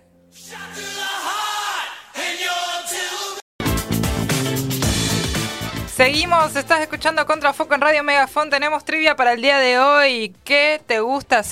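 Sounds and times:
shouted group vocals: 0.4 - 3.4
rock band with drums and electric guitars: 3.6 - 6.6
speech: 6.0 - 11.5.

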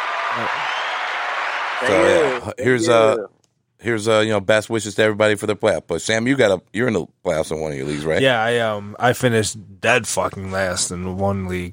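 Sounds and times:
round of applause: 0.0 - 2.5
speech: 0.4 - 0.8, 1.8 - 11.7.

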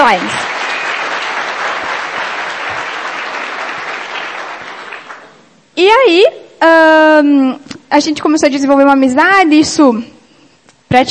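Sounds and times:
audience applause: 0.0 - 5.4
speech: 0.1 - 0.6, 5.8 - 10.2, 10.9 - 11.0.

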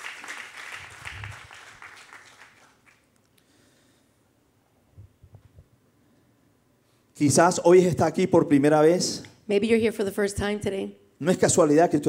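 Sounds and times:
church congregation applause during a service: 0.0 - 3.2
speech: 7.2 - 12.0.

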